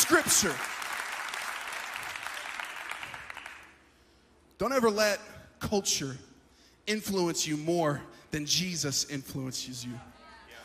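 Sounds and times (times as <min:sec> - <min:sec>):
audience clapping: 0:00.0 - 0:03.8
speech: 0:00.1 - 0:00.8, 0:04.6 - 0:06.3, 0:06.9 - 0:10.1.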